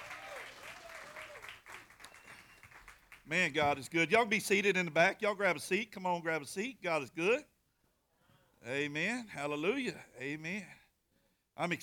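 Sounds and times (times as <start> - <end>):
audience applauding the band: 0.0 - 3.4
speech: 3.3 - 7.5, 8.6 - 10.8, 11.6 - 11.8.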